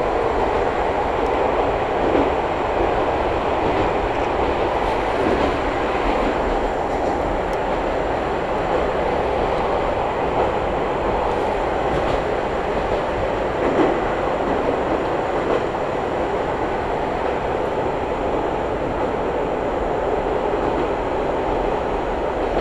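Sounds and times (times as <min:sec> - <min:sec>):
Izuhakone Railway Daiyuzan Line train running from Odawara to Daiyuzan: 0:00.0 - 0:22.5.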